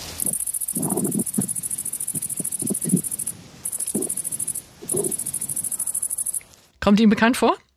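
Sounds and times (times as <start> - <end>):
grasshopper stridulating: 0.0 - 6.7
speech: 6.9 - 7.6.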